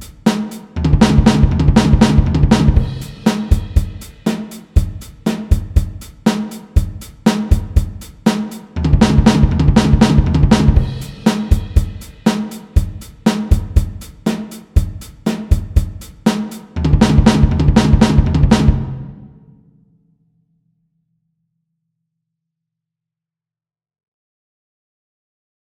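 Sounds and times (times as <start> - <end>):
drum fill: 0.0 - 19.6.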